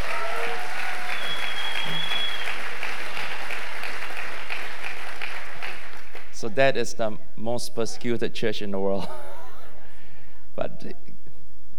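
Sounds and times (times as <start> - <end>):
audience applause: 0.0 - 6.4
speech: 6.5 - 9.2.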